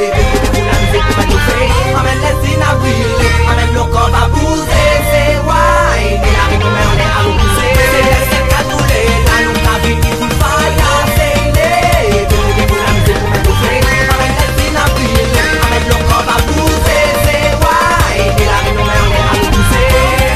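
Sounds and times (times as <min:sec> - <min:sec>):
ringtone: 0:00.2 - 0:20.3.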